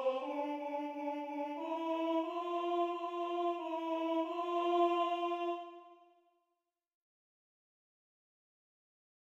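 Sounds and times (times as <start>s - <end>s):
tenor singing: 0.0s - 5.9s.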